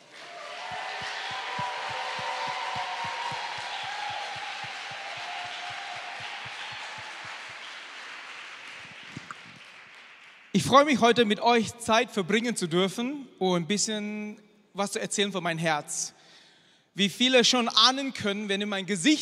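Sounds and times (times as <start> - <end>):
applause: 0.0 - 11.0
speech: 10.6 - 16.2, 17.0 - 19.2.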